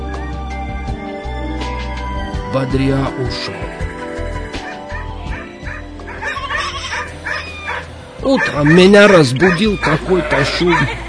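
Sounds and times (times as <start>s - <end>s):
speech: 2.5s - 3.8s, 8.2s - 11.0s
dog whimpering whines: 4.6s - 10.0s
dog barking and yipping: 4.6s - 11.0s.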